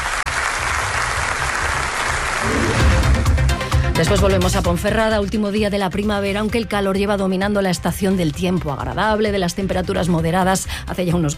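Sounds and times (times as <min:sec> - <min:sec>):
applause: 0:00.0 - 0:03.4
speech: 0:04.0 - 0:11.3.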